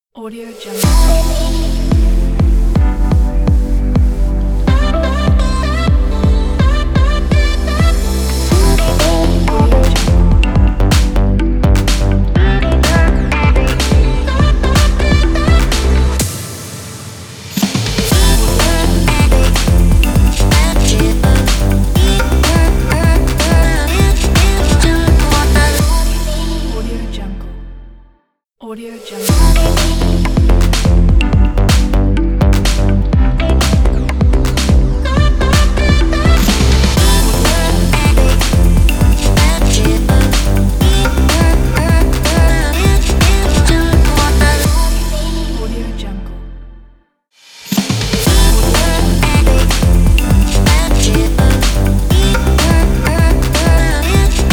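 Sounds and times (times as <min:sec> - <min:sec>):
stylish modern fashion pop ident jingle: 0:00.3 - 0:28.0, 0:29.0 - 0:46.8, 0:47.5 - 0:54.5.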